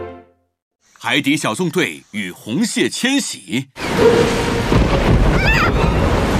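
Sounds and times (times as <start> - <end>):
speech: 1.0 - 5.8
rain: 3.8 - 6.3
thunder: 3.8 - 6.3.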